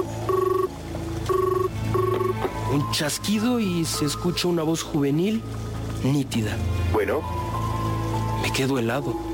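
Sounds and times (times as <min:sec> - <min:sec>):
telephone ringback tone: 0:00.0 - 0:00.7, 0:01.3 - 0:02.4
speech: 0:02.9 - 0:07.5, 0:08.4 - 0:09.2.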